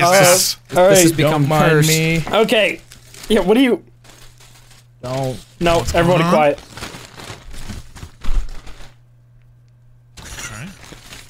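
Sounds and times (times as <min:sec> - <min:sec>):
speech: 0:00.0 - 0:03.9, 0:05.0 - 0:06.7
chip bag rustling while unpacking food: 0:02.4 - 0:09.0, 0:10.2 - 0:11.2.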